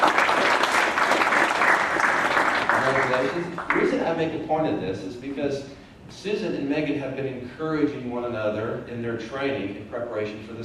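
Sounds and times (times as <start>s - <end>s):
round of applause: 0.0s - 4.0s
speech: 3.1s - 10.6s.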